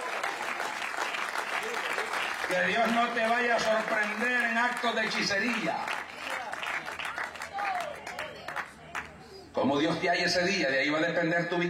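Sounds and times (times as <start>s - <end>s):
audience applause: 0.0s - 9.1s
speech: 2.5s - 6.0s, 9.6s - 11.6s.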